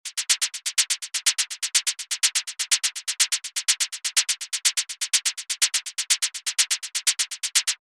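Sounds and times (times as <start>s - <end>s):
gentle hi-hats: 0.0s - 7.8s
shakers: 0.0s - 7.8s.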